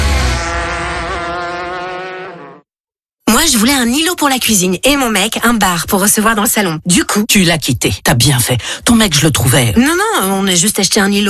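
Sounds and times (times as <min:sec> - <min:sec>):
go-kart engines racing on the Loni karting track in the Ardennes: 0:00.0 - 0:02.6
speech: 0:03.4 - 0:11.2.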